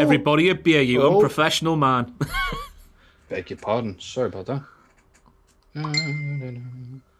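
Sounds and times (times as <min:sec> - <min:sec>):
speech: 0:00.0 - 0:02.6, 0:03.3 - 0:04.8, 0:05.8 - 0:07.1
laughter: 0:02.2 - 0:02.8
phone notification chime: 0:05.8 - 0:06.8.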